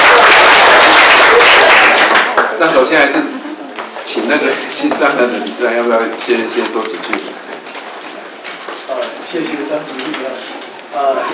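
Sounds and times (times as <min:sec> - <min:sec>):
crowd clapping at an association meeting: 0:00.0 - 0:04.0
speech: 0:02.7 - 0:03.4, 0:04.1 - 0:07.5, 0:09.3 - 0:11.3.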